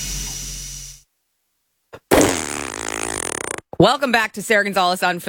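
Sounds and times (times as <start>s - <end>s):
fart sound effect: 2.1s - 3.7s
speech: 3.8s - 5.2s.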